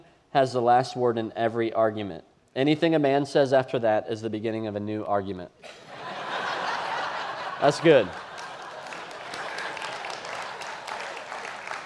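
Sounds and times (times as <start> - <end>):
speech: 0.3 - 5.9, 7.6 - 8.2
laughter: 5.6 - 11.7
audience clapping: 6.6 - 11.8.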